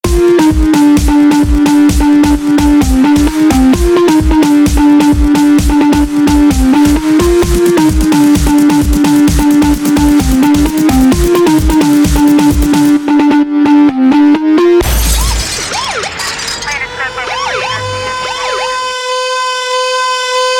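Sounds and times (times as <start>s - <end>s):
phonk song: 0.0s - 20.1s.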